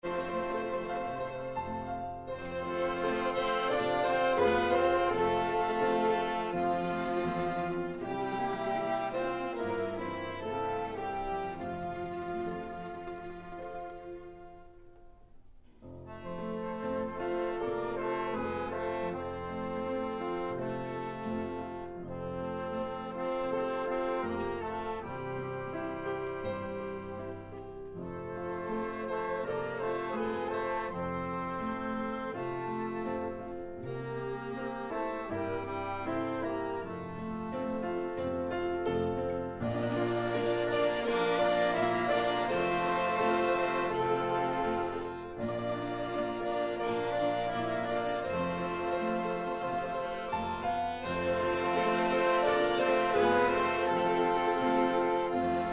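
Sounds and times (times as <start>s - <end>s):
orchestra playing: 0.0s - 15.1s, 16.2s - 55.7s.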